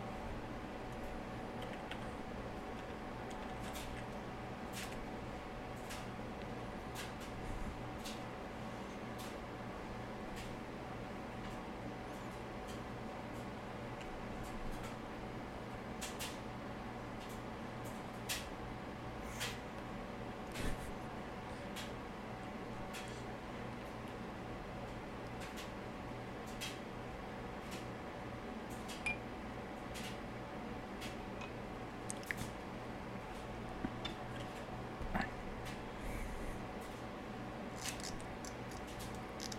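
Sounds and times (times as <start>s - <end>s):
steady low hum with fixed tones: 0.0s - 39.5s.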